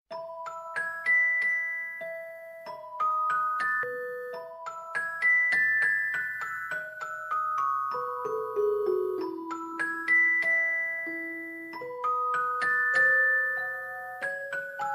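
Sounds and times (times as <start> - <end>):
music box: 0.1 - 14.9.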